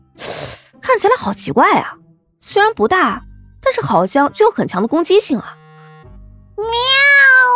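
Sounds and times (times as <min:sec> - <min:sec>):
speech: 0:00.9 - 0:05.6
cat meowing: 0:06.6 - 0:07.5.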